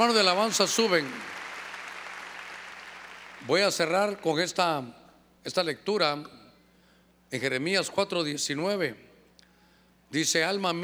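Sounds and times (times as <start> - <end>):
speech: 0.0 - 1.3, 3.4 - 6.4, 7.3 - 9.1, 10.1 - 10.8
audience clapping loudly: 0.0 - 3.6.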